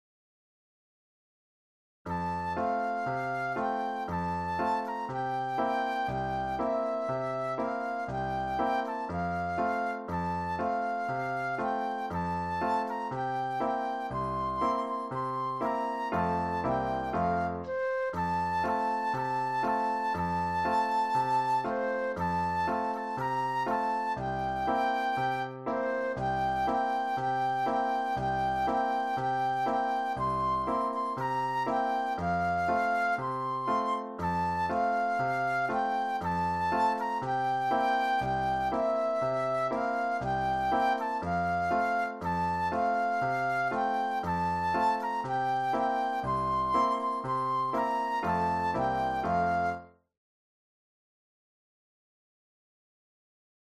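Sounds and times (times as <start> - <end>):
flute solo: 2.1 - 50.0.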